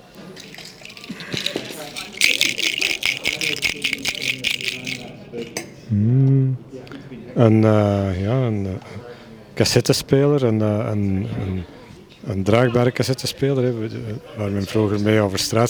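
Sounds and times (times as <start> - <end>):
plastic box of little plastic soy-sauce fish rattling: 0.0 - 5.1
speech: 7.4 - 9.0, 9.6 - 15.6.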